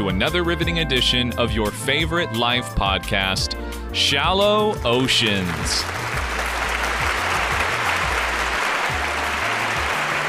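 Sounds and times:
speech: 0.0 - 6.1
crowd applause: 5.2 - 10.2.

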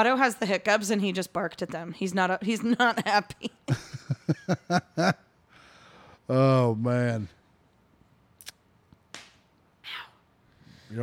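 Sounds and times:
speech: 0.0 - 5.2, 6.3 - 7.4
sports bra strap snapping against skin: 8.4 - 9.5.

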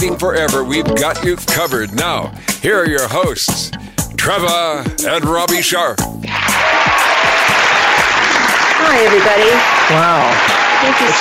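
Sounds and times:
speech: 0.0 - 7.5, 8.8 - 11.1
crowd applauding: 6.2 - 11.1.

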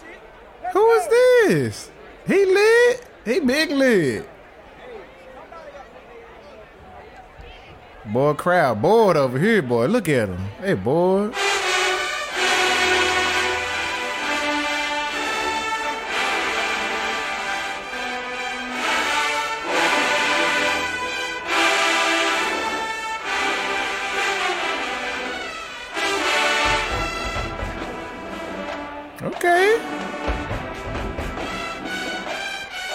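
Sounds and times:
speech: 1.5 - 4.3, 8.1 - 11.4
marching band trumpets playing: 11.3 - 32.9.

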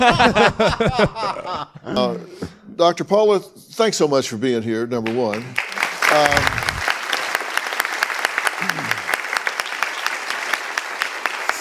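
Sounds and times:
laughter: 0.0 - 2.1
speech: 0.0 - 6.9
audience applause: 5.0 - 11.5.

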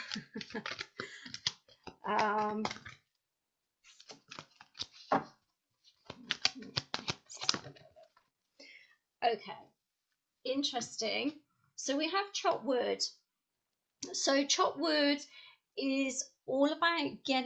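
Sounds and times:
oracle cards pulled out of their pack: 0.0 - 3.1, 3.8 - 8.3
speech: 2.1 - 2.9, 10.6 - 13.2, 14.0 - 17.4.

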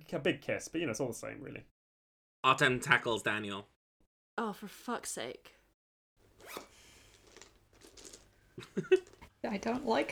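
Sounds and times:
speech: 0.1 - 1.8, 2.4 - 3.8, 4.4 - 5.6, 8.6 - 10.1
zipper being pulled: 6.2 - 8.4.

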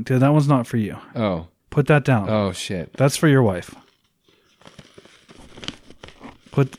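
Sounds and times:
speech: 0.0 - 3.8, 6.5 - 6.7
gift wrap paper being crumpled and cleared away: 2.9 - 6.7.

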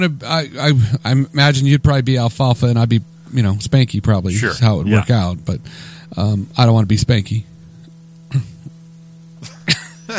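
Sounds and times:
speech: 0.0 - 7.5, 8.3 - 8.5
steady low hum: 3.0 - 10.1
dry coughing from a tickle in the throat: 4.3 - 5.1, 9.4 - 10.1.

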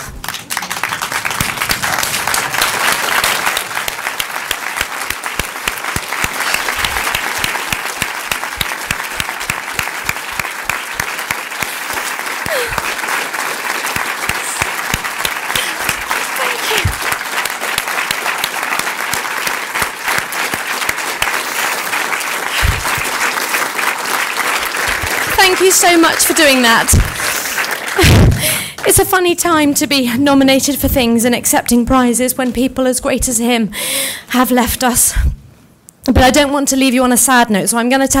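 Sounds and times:
standing audience applause: 0.0 - 29.0
speech: 25.8 - 27.1, 29.0 - 35.3, 36.2 - 38.1.

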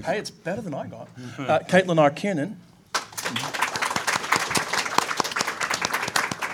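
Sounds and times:
speech: 0.0 - 2.7, 3.3 - 3.7
audience applause: 3.0 - 6.5.

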